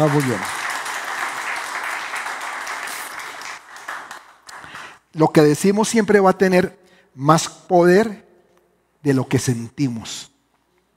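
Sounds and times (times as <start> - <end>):
speech: 0.0 - 0.6, 5.2 - 8.2, 9.0 - 10.3
audience applause: 0.0 - 5.0.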